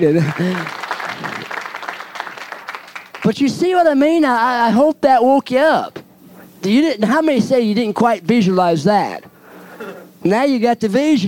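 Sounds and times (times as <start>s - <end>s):
speech: 0.0s - 0.8s, 3.3s - 6.0s, 6.6s - 9.3s, 10.2s - 11.2s
church congregation applauding as a hand-clap offering: 0.0s - 3.4s.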